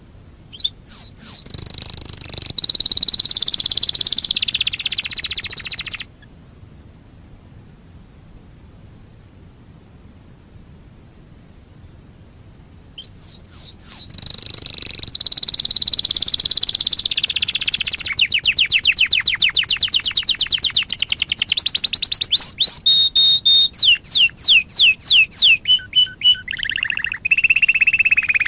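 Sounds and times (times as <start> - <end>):
Waterslager canary singing a high pulsed trill: 0.5 - 6.1, 13.0 - 28.4.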